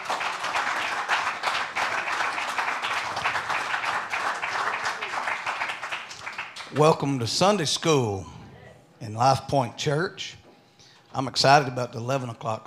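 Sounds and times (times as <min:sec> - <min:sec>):
audience applauding: 0:00.0 - 0:06.9
speech: 0:06.7 - 0:08.4, 0:09.0 - 0:10.4, 0:11.1 - 0:12.6.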